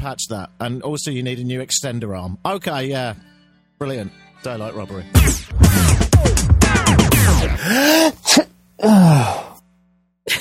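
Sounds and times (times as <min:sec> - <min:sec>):
speech: 0:00.0 - 0:09.5
voice imitating sneezing: 0:07.5 - 0:09.6.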